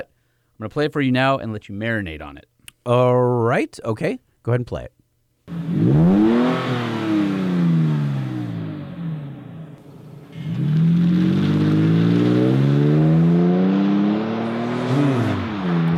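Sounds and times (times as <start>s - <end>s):
speech: 0.6s - 6.7s
Borla S-Type exhaust revving: 5.5s - 15.9s.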